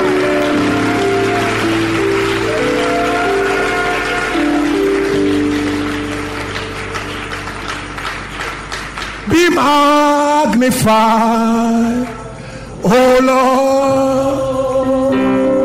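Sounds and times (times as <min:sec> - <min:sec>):
audience clapping and applauding: 0:00.0 - 0:10.9
speech: 0:10.6 - 0:12.1, 0:12.8 - 0:14.5.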